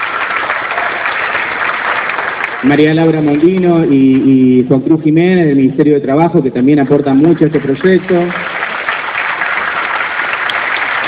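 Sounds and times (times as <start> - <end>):
audience applause at a presentation of a provincial program: 0.0 - 4.6, 7.3 - 11.0
speech: 2.6 - 8.5.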